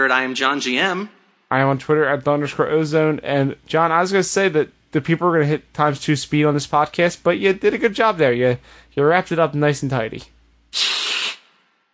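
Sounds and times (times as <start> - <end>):
speech: 0.0 - 10.9
hiss: 10.8 - 11.5.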